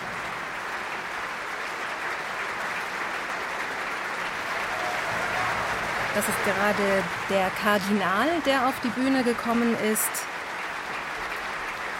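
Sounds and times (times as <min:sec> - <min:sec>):
audience applause for opera performers: 0:00.0 - 0:11.9
speech: 0:06.2 - 0:10.3.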